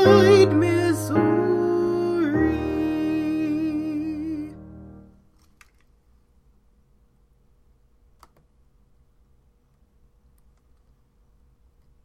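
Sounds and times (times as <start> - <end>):
voice practising with piano: 0.0 - 4.9.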